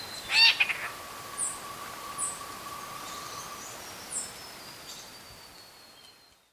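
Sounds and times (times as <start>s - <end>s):
squirrel cuckoo cat-like nasal call: 0.1s - 4.3s.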